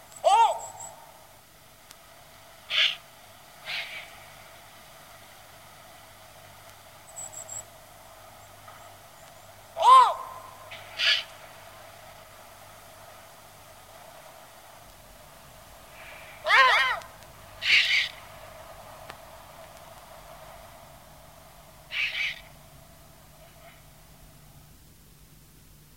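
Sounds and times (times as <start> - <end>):
eagle owl calls and songs: 0.0 - 1.3, 2.6 - 4.5, 8.4 - 11.7, 15.8 - 19.0, 21.7 - 24.0.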